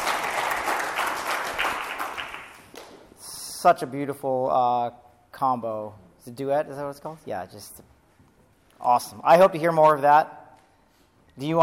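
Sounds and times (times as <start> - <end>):
audience applause: 0.0 - 2.7
speech: 3.6 - 7.9, 8.8 - 10.4, 11.4 - 11.6.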